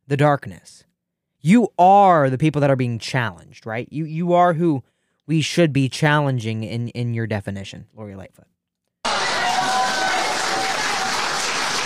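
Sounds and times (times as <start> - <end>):
speech: 0.1 - 8.5
crowd applauding: 9.1 - 11.8.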